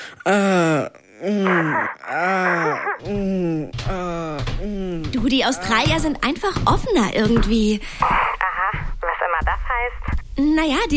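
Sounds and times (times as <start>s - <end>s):
voice imitating sexual moaning: 0.2s - 5.7s
speech: 0.2s - 8.2s, 9.4s - 10.9s.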